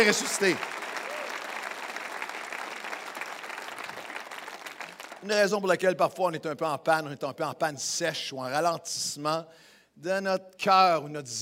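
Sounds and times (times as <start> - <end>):
speech: 0.0 - 0.8, 5.2 - 11.3
audience applauding: 0.0 - 5.3.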